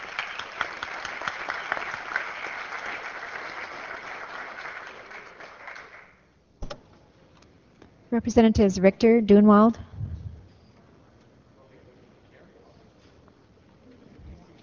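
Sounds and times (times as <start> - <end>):
applause welcoming visitors in a legislative chamber at the Capitol: 0.0 - 6.3
speech: 8.1 - 9.9.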